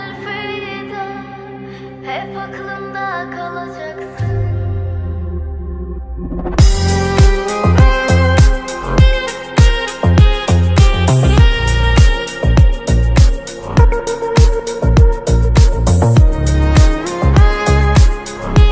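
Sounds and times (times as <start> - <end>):
deep house remix: 4.1 - 18.6.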